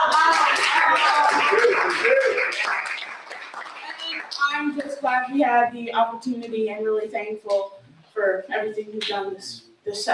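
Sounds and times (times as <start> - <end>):
cheering voices: 0.0 - 3.1
audience clapping: 0.0 - 5.0
speech: 5.3 - 10.1.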